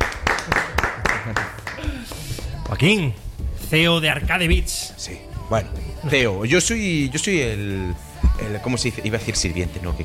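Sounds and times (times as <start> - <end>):
audience clapping for a guest: 0.0 - 2.8
speech: 2.7 - 10.0.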